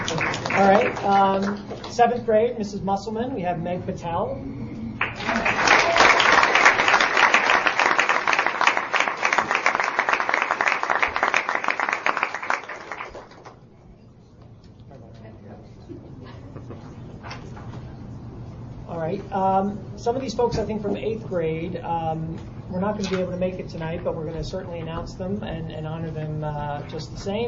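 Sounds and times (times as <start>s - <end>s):
audience applause: 0.0s - 1.9s, 5.0s - 13.6s
faint room murmur: 0.0s - 27.4s
speech: 0.6s - 4.6s, 19.3s - 27.4s.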